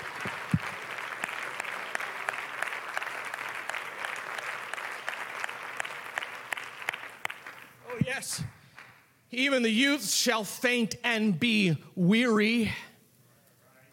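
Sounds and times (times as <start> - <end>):
audience clapping hands: 0.0 - 9.1
speech: 8.2 - 8.6, 9.3 - 12.9.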